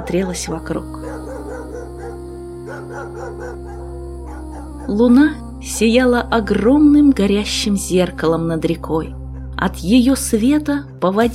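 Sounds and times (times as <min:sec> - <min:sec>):
speech: 0:00.0 - 0:01.3, 0:04.9 - 0:11.3
wild dogs barking and yelping: 0:00.0 - 0:05.0.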